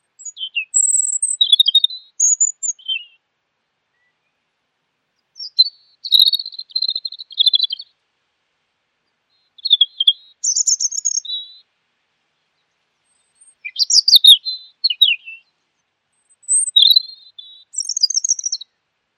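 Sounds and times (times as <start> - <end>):
bird song with twittering and chirps: 0.2 - 3.0, 5.4 - 7.8, 9.6 - 11.6, 13.3 - 15.4, 16.3 - 18.6.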